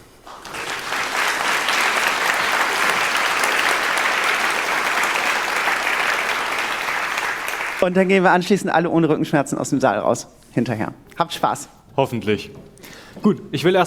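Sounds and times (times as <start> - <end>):
audience applause: 0.0 - 8.0
speech: 7.8 - 13.8.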